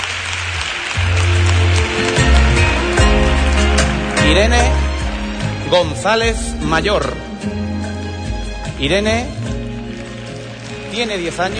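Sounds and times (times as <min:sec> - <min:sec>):
crowd applause: 0:00.0 - 0:05.9, 0:08.2 - 0:11.5
speech: 0:04.3 - 0:04.8, 0:05.7 - 0:07.6, 0:08.8 - 0:09.4, 0:10.9 - 0:11.5.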